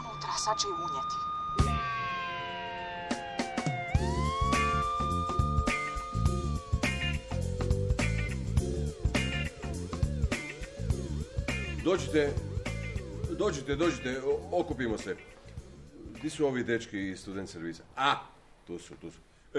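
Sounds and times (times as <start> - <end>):
police car siren wailing: 0.0 - 8.3
rhythmic beat-driven backing music: 0.0 - 16.2
speech: 0.4 - 1.7, 11.9 - 12.4, 13.4 - 15.3, 16.2 - 19.5.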